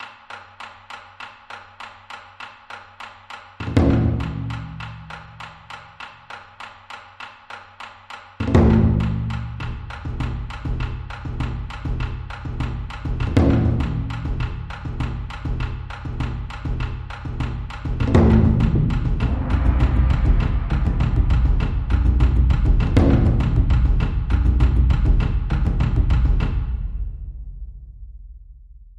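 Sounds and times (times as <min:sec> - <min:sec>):
East Asian drum: 0:03.6 - 0:06.0, 0:08.4 - 0:28.9.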